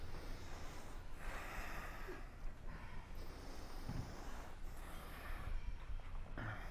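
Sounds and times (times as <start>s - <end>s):
deep ujjayi inhales through a constricted throat: 0.0s - 6.6s.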